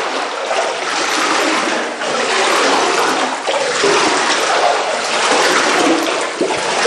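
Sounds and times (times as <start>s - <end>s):
water churning and splashing in deep standing water: 0.0s - 6.8s.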